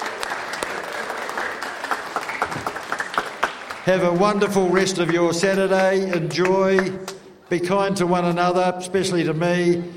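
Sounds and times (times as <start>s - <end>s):
audience applause: 0.0s - 6.9s
speech: 3.9s - 9.9s.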